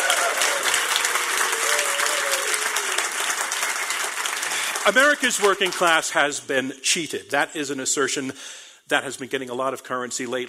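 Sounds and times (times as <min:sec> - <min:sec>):
audience applause: 0:00.0 - 0:06.0
speech: 0:04.8 - 0:10.4.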